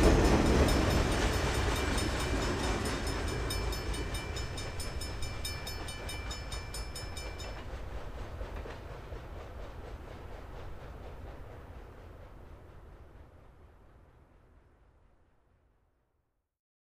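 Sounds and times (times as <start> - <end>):
railway level crossing: 0.0 - 14.7.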